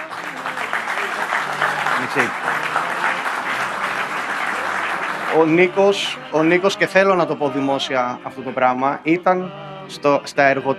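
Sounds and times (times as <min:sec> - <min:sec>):
audience applause: 0:00.0 - 0:06.7
speech: 0:02.1 - 0:03.2, 0:05.3 - 0:10.7.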